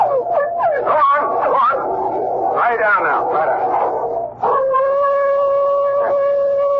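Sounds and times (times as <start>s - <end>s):
old hound howling: 0.0s - 6.7s.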